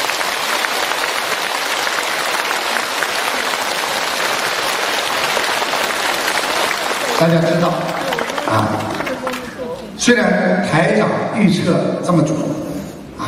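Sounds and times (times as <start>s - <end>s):
audience applause: 0.0s - 10.0s
speech: 7.2s - 7.9s, 8.5s - 9.0s, 10.0s - 12.7s.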